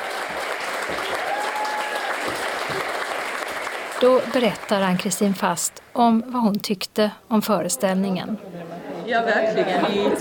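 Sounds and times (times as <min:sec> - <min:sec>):
theatre audience applause at the end of a performance: 0:00.0 - 0:05.0
speech: 0:04.0 - 0:10.1.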